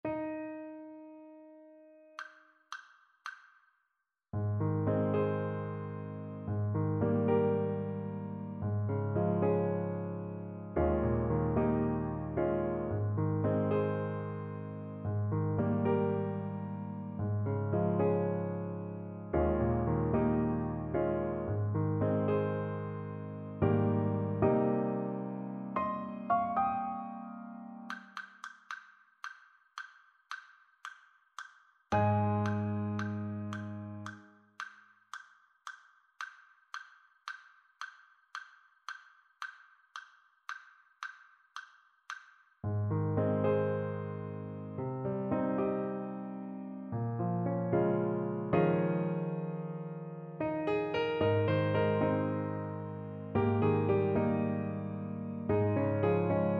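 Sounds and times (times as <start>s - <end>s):
piano: 0.0s - 2.4s, 4.4s - 29.4s, 31.9s - 34.8s, 42.6s - 56.5s.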